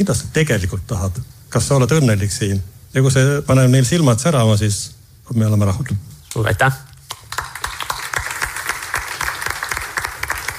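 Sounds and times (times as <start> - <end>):
speech: 0.0 - 6.9
audience applause: 7.1 - 10.5.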